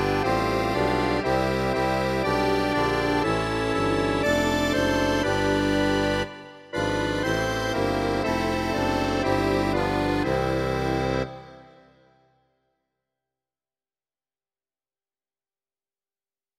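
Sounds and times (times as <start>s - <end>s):
accordion: 0.0s - 12.2s
contrabassoon: 0.0s - 12.2s.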